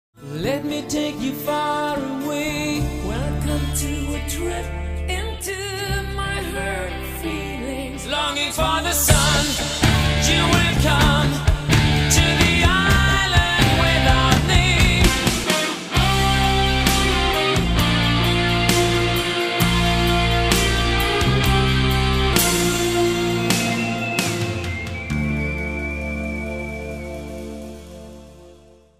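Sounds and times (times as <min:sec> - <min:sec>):
rock music mix: 0:00.3 - 0:28.8.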